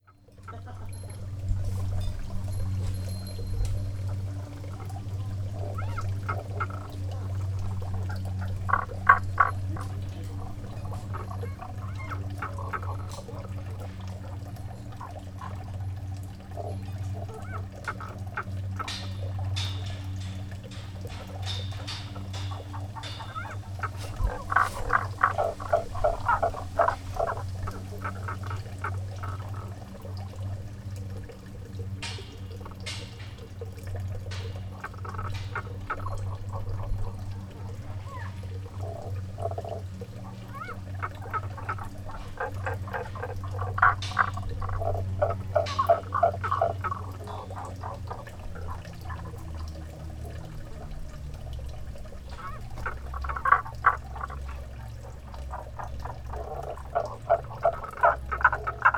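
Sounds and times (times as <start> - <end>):
frogs croaking: 0.0 - 58.9.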